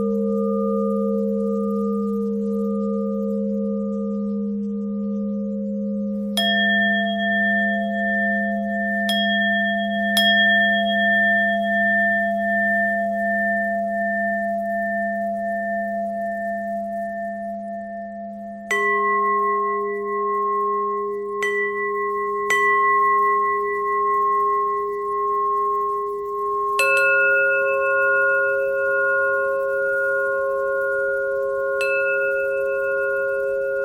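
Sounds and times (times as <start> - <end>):
bells: 0.0 - 33.8.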